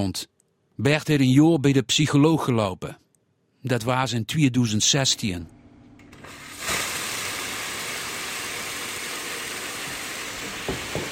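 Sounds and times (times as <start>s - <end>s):
speech: 0.0s - 3.0s, 3.6s - 5.6s
machine venting steam to release pressure: 6.2s - 11.1s.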